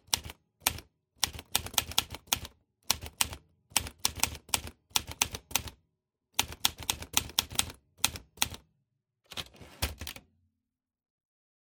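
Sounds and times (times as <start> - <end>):
typewriter typing: 0.0 - 5.8, 6.4 - 8.6, 9.3 - 10.2.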